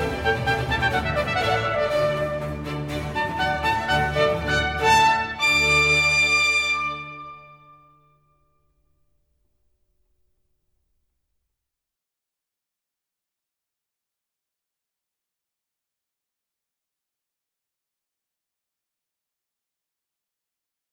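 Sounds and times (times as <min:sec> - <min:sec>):
concerto for trumpet, strings and continuo, allegro: 0:00.0 - 0:07.8.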